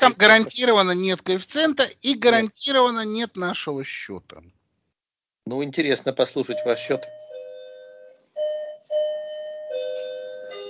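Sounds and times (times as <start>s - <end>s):
speech: 0.0s - 4.6s, 5.5s - 7.2s
doorbell-style electronic chime: 6.5s - 10.6s.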